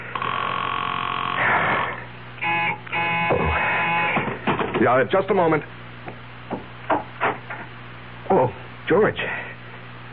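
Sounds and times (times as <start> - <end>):
loud buzzy electronic telephone ringing unanswered: 0.1 - 1.4, 2.4 - 4.3
speech: 4.8 - 5.8, 8.4 - 9.4.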